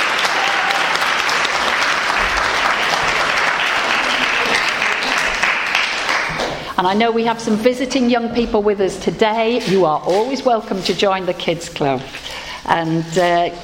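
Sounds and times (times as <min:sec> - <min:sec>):
round of applause: 0:00.0 - 0:06.6
speech: 0:06.8 - 0:13.6.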